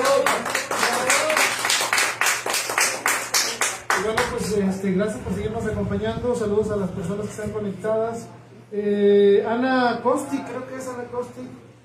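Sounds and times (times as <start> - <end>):
steady rhythmic hand claps: 0.0 - 4.6
speech: 4.0 - 11.7.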